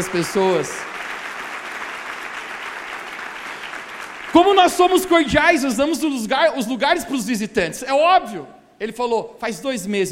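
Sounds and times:
speech: 0.0s - 1.0s, 4.4s - 10.0s
audience applauding: 0.0s - 5.3s.

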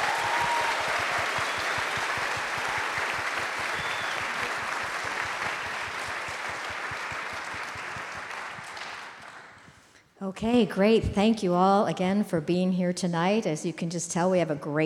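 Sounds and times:
audience applause: 0.0s - 9.7s
speech: 10.4s - 14.8s.

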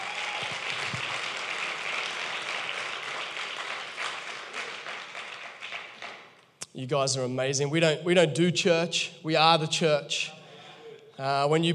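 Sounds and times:
audience round of applause: 0.0s - 6.4s
speech: 6.8s - 10.4s, 11.2s - 11.7s.

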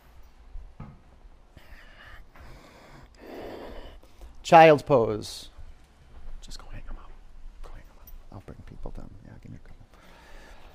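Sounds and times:
ujjayi breathing through the nose during yoga practice: 1.6s - 4.4s, 9.9s - 10.7s
speech: 4.5s - 5.5s.

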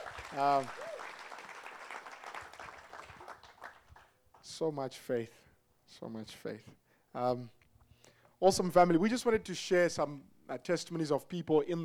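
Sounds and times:
round of applause: 0.0s - 4.5s
speech: 0.3s - 0.8s, 4.5s - 7.6s, 8.4s - 11.8s.

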